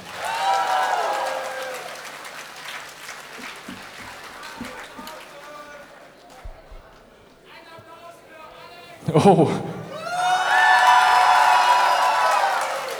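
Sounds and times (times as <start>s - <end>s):
audience applause at a live concert: 0.0s - 6.2s, 10.0s - 12.9s
speech: 9.1s - 9.7s.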